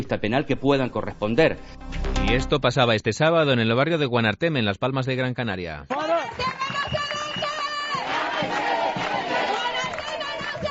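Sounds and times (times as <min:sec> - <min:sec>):
speech: 0:00.0 - 0:06.4
street protest crowd shouting against gentrification in Guanarteme: 0:06.0 - 0:10.6.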